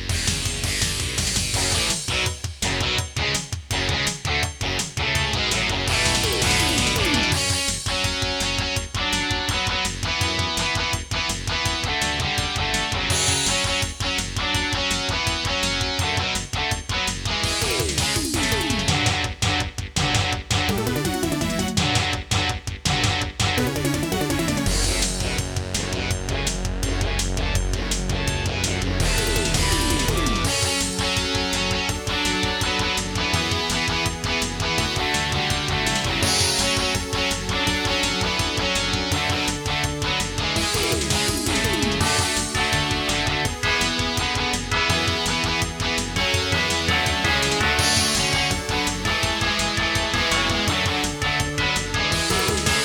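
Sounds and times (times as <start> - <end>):
AWE64 sound card synthesized music: 0.1 - 52.8.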